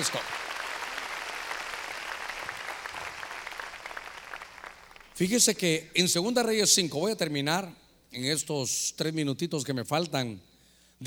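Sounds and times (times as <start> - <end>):
speech: 0.0 - 0.4, 5.2 - 11.0
audience clapping loudly: 0.0 - 5.2.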